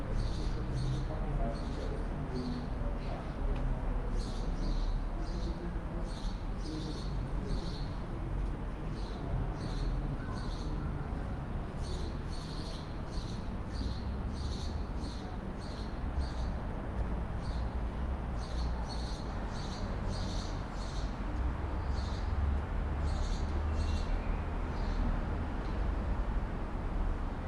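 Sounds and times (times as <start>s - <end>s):
birdsong in a suburban tunnel: 0.0s - 3.2s, 4.1s - 8.0s, 8.9s - 11.0s, 11.8s - 16.6s, 18.4s - 21.2s, 21.8s - 25.1s
pedestrians mumbling: 0.0s - 26.7s
distant traffic: 0.0s - 27.4s.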